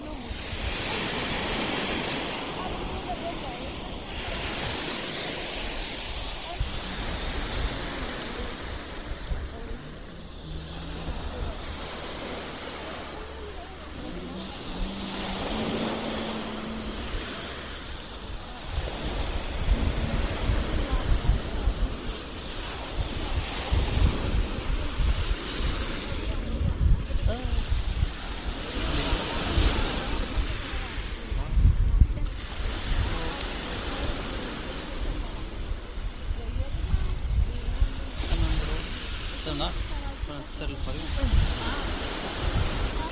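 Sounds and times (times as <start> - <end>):
surf on the beach in Barcelona: 0.0 - 43.1
voices talking: 0.0 - 43.1
wind on the beach in Barcelona: 0.0 - 43.1.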